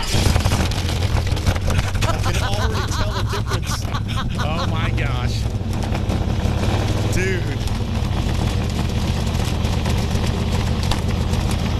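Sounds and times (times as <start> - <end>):
car exhaust revving loudly: 0.0 - 11.7
laughter: 1.5 - 5.5.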